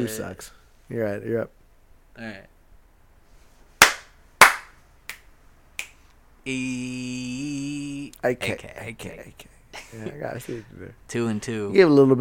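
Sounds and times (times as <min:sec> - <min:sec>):
speech: 0:00.0 - 0:01.6, 0:02.2 - 0:02.5, 0:06.4 - 0:12.1
hand slaps: 0:03.8 - 0:06.0
finger snaps: 0:05.1 - 0:06.1.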